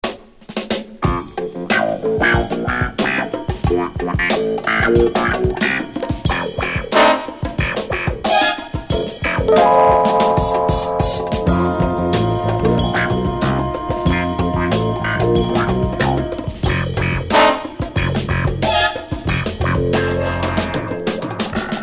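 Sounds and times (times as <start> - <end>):
clavinet instrumental: 1.0 - 21.8.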